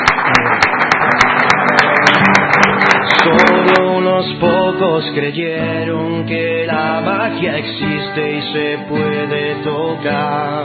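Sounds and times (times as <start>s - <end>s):
applause: 0.0s - 4.1s
speech: 5.0s - 10.6s.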